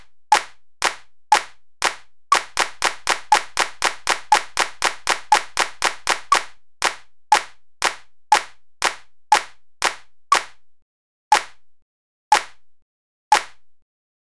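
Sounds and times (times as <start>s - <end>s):
rhythm exercise of note values: 0.0s - 10.6s, 11.3s - 11.6s, 12.3s - 12.6s, 13.3s - 13.6s.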